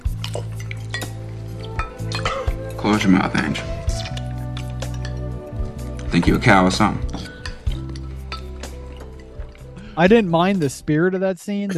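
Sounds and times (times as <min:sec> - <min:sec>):
utensils clinking and scraping against dishes: 0:00.1 - 0:05.3, 0:07.0 - 0:09.6
speech: 0:02.8 - 0:03.8, 0:06.1 - 0:07.3, 0:10.0 - 0:11.7.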